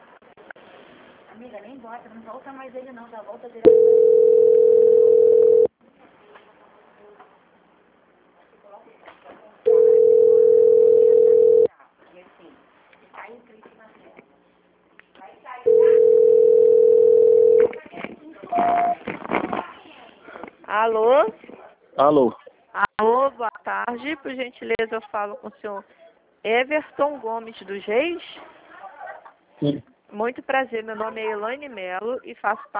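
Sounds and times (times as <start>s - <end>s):
faint noise: 0.0s - 32.7s
speech: 1.4s - 5.0s, 22.0s - 22.4s, 23.9s - 28.5s, 29.6s - 32.7s
telephone call-transfer tones over a speakerphone: 3.7s - 5.7s, 9.7s - 11.7s, 15.7s - 17.7s, 18.5s - 19.0s.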